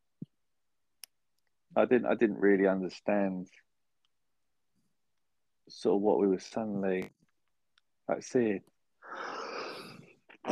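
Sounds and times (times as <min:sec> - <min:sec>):
speech: 0:01.8 - 0:03.7, 0:05.7 - 0:07.2, 0:08.1 - 0:09.3
person sneezing: 0:09.1 - 0:10.5.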